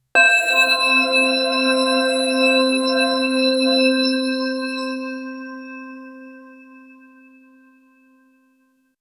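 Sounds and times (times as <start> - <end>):
clean digital chime: 0.2 - 6.3.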